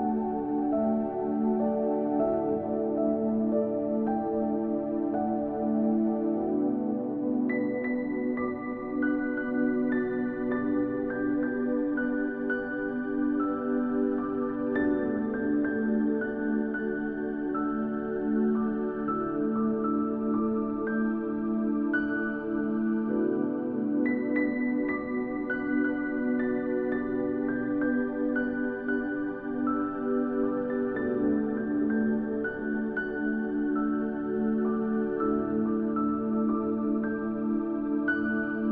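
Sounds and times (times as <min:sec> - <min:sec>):
instrumental piano worship music: 0:00.0 - 0:38.6.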